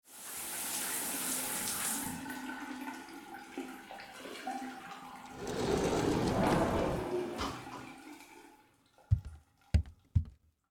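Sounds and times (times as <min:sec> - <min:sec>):
shower running: 0:00.1 - 0:02.4, 0:05.2 - 0:08.4.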